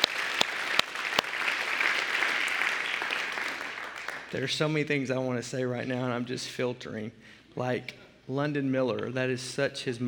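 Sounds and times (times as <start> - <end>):
church audience applauding for the kids: 0.0 - 4.7
speech: 4.3 - 10.0.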